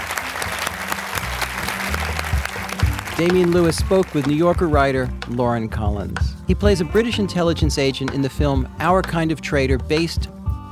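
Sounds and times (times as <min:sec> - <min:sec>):
audience applause: 0:00.0 - 0:04.8
speech: 0:03.2 - 0:10.4.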